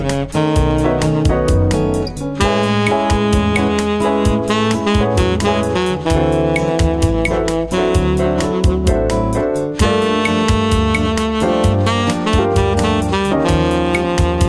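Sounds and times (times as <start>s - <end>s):
Latino saxophone melody: 0.0s - 14.4s.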